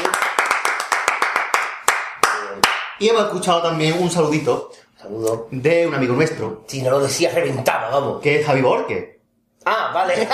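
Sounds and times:
hand claps: 0.0s - 3.0s
speech: 3.0s - 10.3s.

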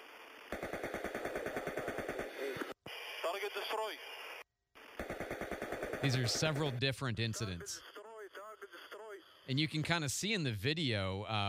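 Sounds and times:
AH-64 Apache helicopter automatic cannon firing at drones: 0.5s - 2.6s, 5.0s - 6.7s
crackly radio voices: 1.9s - 5.1s, 5.8s - 10.4s
speech: 3.3s - 4.2s, 6.0s - 7.9s, 9.5s - 11.4s.

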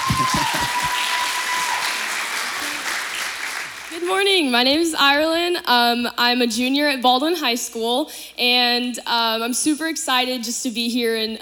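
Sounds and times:
audience applause: 0.0s - 4.1s
speech: 4.0s - 11.3s.

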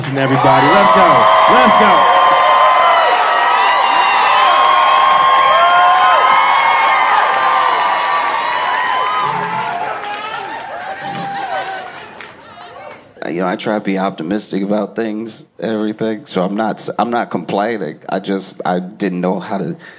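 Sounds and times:
audience clapping: 0.0s - 13.2s
speech: 0.1s - 2.1s, 13.4s - 19.9s.

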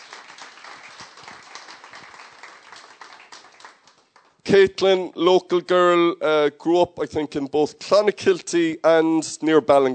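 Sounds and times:
audience round of applause: 0.0s - 4.3s
speech: 4.5s - 9.9s.

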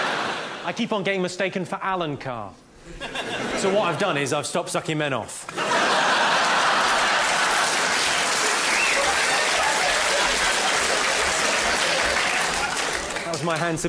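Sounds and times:
laughter: 0.0s - 0.6s, 2.8s - 4.3s, 5.5s - 13.2s
speech: 0.7s - 6.1s, 13.4s - 13.8s
audience applause: 5.6s - 13.8s.

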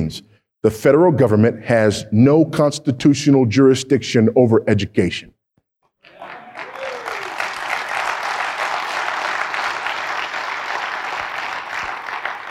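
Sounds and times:
speech: 0.1s - 5.3s
large audience applause: 6.1s - 12.4s.

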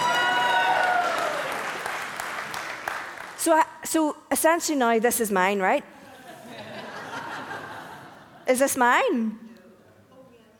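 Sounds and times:
people cheering: 0.0s - 2.3s
audience applause: 0.0s - 3.4s
speech: 3.4s - 6.0s, 8.5s - 9.4s
laughter: 6.0s - 8.6s.

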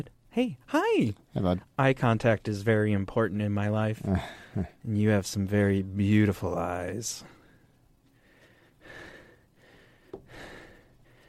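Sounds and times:
speech: 0.0s - 7.4s
heavy breathing into a microphone: 7.2s - 11.2s.

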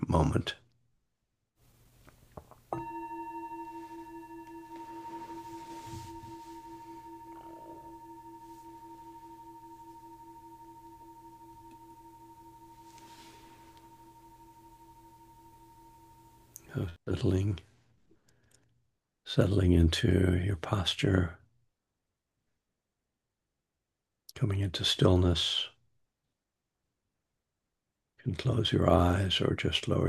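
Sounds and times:
meditation bell ringing: 2.7s - 16.5s
speech: 17.2s - 17.7s, 19.4s - 21.4s, 24.4s - 25.7s, 28.2s - 30.0s.

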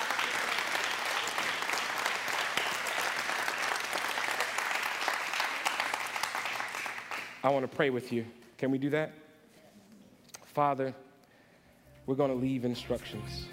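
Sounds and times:
audience clapping hands: 0.0s - 7.7s
speech: 7.4s - 9.2s, 10.6s - 11.0s, 12.0s - 13.5s.

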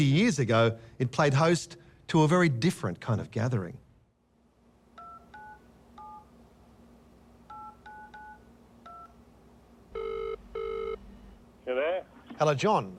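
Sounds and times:
speech: 0.0s - 3.8s, 12.4s - 12.9s
low steady hum: 0.0s - 12.9s
two-tone beeps of a phone number being keyed in: 5.0s - 6.3s, 7.5s - 9.1s
buzzing telephone ring tones: 7.5s - 9.1s, 10.0s - 11.0s.

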